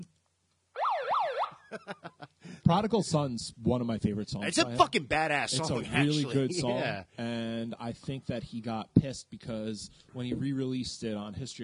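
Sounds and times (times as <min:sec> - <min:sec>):
alarm siren wailing: 0:00.8 - 0:01.6
laughter: 0:01.6 - 0:02.4
speech: 0:02.7 - 0:11.6.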